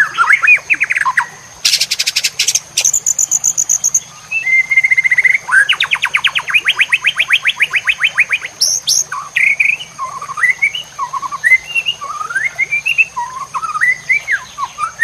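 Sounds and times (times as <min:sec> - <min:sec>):
White-rumped shama song: 0:00.0 - 0:15.0.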